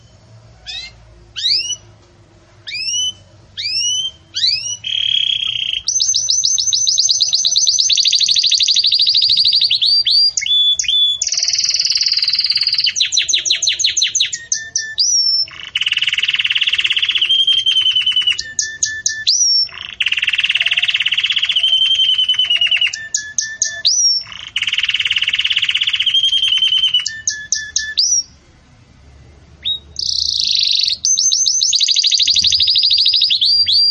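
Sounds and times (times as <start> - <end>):
canary song: 0.0 - 2.0, 2.6 - 28.4, 29.6 - 33.8.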